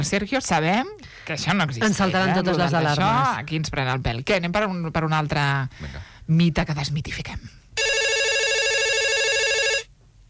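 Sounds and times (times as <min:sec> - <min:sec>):
speech: 0:00.0 - 0:07.6
telephone ringing with electronic trill: 0:07.8 - 0:09.9.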